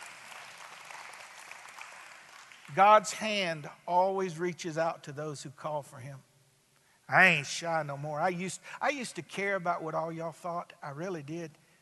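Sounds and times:
audience clapping: 0.0 - 3.2
speech: 2.7 - 6.3, 7.1 - 11.6.

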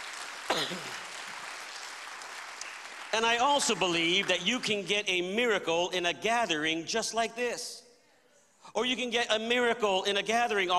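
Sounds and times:
audience clapping: 0.0 - 5.0
speech: 3.1 - 7.8, 8.6 - 10.7.

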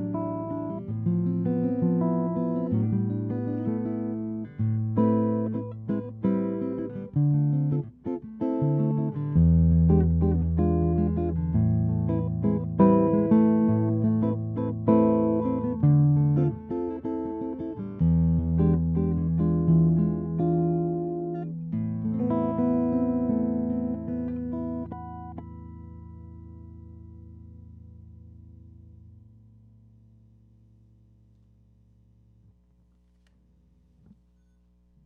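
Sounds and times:
jazz tango on hollow-body electric guitar: 0.0 - 27.6.

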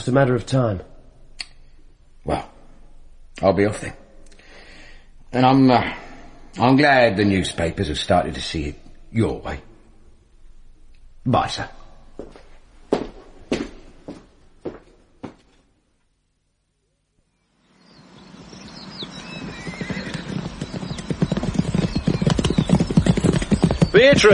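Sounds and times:
speech: 0.0 - 0.9, 2.3 - 2.5, 3.4 - 4.0, 5.3 - 6.0, 6.6 - 9.7, 11.2 - 12.4, 24.0 - 24.3
busy noise with high squealing tones: 18.1 - 24.3
horse hooves clip-clopping at a slow walking pace: 18.4 - 24.3.

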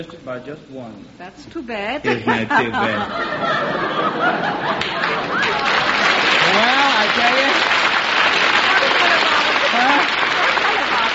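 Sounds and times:
speech: 0.0 - 7.8
laughter: 2.0 - 7.0, 8.6 - 11.1
studio audience applause: 4.6 - 11.1.

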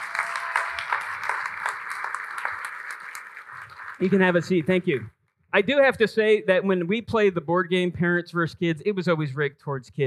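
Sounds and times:
round of applause from a group: 0.0 - 5.0
speech: 4.0 - 10.0.

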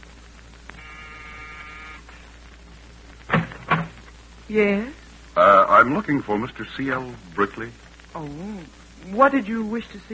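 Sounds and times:
apartment door buzzer: 0.8 - 2.0
speech: 4.5 - 10.1.

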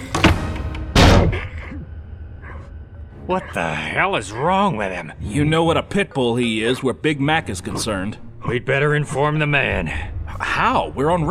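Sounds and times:
door slammed shut: 0.0 - 1.5
speech: 3.3 - 11.2.

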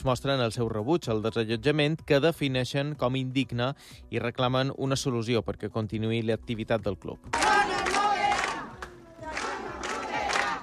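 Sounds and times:
speech: 0.0 - 7.8
protesting crowd shouting: 7.4 - 10.6.

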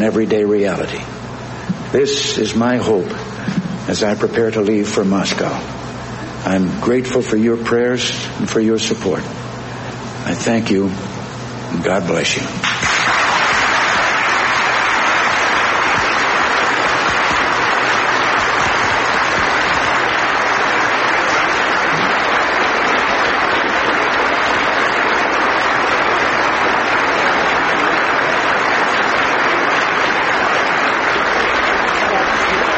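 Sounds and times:
speech: 0.0 - 1.2, 1.9 - 5.8, 6.4 - 9.5, 10.2 - 11.1, 11.8 - 12.7
enthusiastic audience applause after speech: 12.6 - 32.7.

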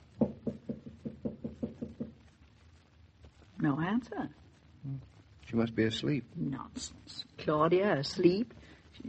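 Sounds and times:
knocking on a door: 0.2 - 2.3
speech: 3.6 - 9.0.

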